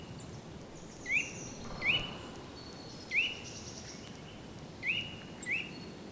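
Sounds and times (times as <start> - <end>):
Eurasian nuthatch piping whistle call: 0.9 - 5.7.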